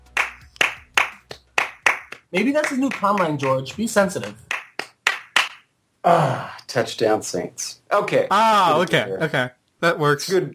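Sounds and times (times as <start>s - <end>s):
slow hand clapping: 0.0s - 5.7s
speech: 2.3s - 4.4s, 6.0s - 10.5s.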